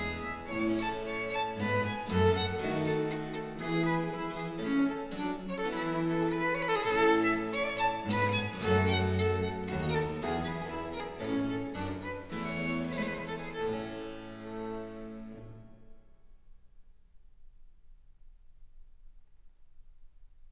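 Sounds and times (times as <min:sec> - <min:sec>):
viol sonata in B-flat major: 0:00.0 - 0:16.0.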